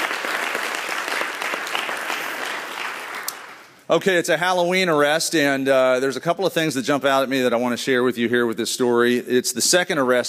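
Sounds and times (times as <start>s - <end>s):
audience applause: 0.0s - 3.8s
speech: 3.9s - 10.2s.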